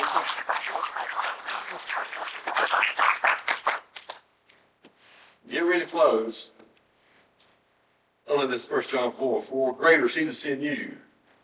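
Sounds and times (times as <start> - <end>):
people clapping hands in praise: 0.0 - 4.2
speech: 0.2 - 3.2, 5.5 - 6.6, 8.3 - 11.0.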